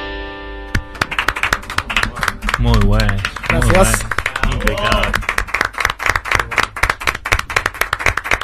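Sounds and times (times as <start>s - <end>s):
applause: 0.8s - 8.4s
speech: 2.7s - 5.3s.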